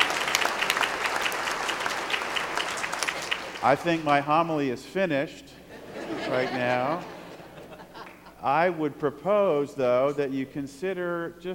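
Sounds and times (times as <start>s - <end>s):
audience applause: 0.0s - 4.2s
speech: 3.6s - 5.5s, 6.3s - 7.2s, 8.4s - 11.5s
laughter: 5.7s - 8.8s.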